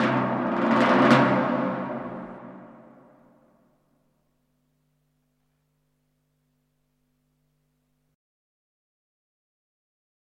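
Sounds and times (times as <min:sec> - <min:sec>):
drum roll: 0:00.0 - 0:04.0.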